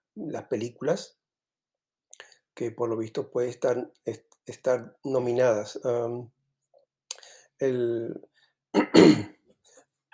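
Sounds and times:
speech: 0:00.2 - 0:01.2, 0:02.6 - 0:06.4, 0:07.1 - 0:09.4
person coughing: 0:08.8 - 0:09.4
throat clearing: 0:08.8 - 0:09.4.

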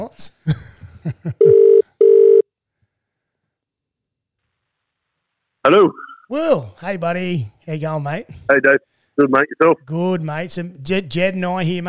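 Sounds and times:
speech: 0:00.1 - 0:00.6, 0:06.3 - 0:11.8
outgoing call ringback tone: 0:01.4 - 0:02.4.

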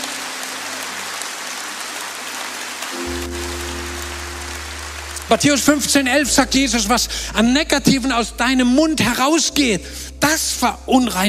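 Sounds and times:
audience clapping: 0:00.0 - 0:06.7
low sustained hum: 0:03.0 - 0:09.0
speech: 0:05.3 - 0:11.2.

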